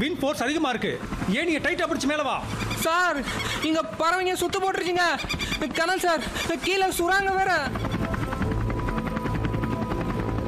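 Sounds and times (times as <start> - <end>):
speech: 0.0 - 7.9
helicopter hovering overhead: 0.0 - 10.4.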